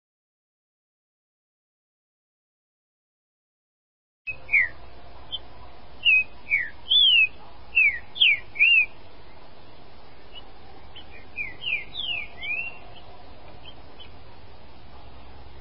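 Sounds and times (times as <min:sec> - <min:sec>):
Green-winged Saltator song of bright whistled notes: 0:04.3 - 0:05.4, 0:06.0 - 0:09.0, 0:10.1 - 0:14.2.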